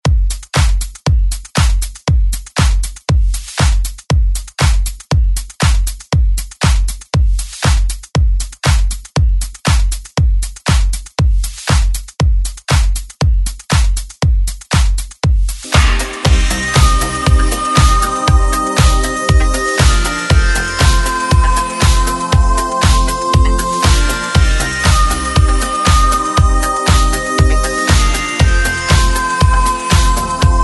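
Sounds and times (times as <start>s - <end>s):
80s Re Drum drum machine beat at 118 BPM: 0.0s - 30.6s.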